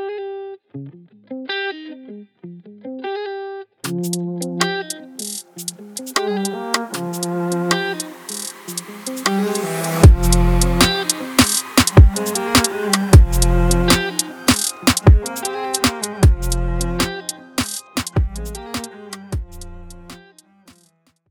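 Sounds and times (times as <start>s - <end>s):
trap beat samples: 3.9s - 20.8s.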